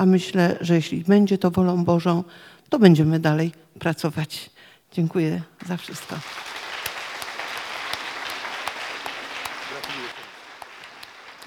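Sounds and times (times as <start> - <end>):
speech: 0.0 - 6.5
audience applause: 5.6 - 11.4.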